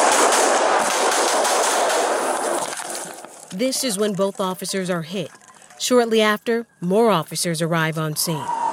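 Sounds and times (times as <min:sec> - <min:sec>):
gunfire on police body camera footage: 0:00.0 - 0:02.6
speech: 0:03.5 - 0:08.6.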